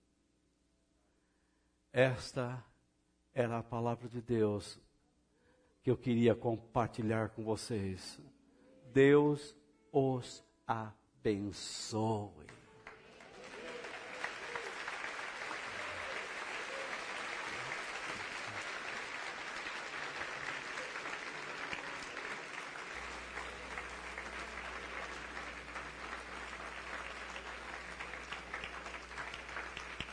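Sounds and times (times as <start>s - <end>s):
speech: 2.0s - 2.7s, 3.4s - 4.9s, 5.8s - 12.6s
audience clapping: 12.4s - 30.1s
low steady hum: 17.6s - 30.1s.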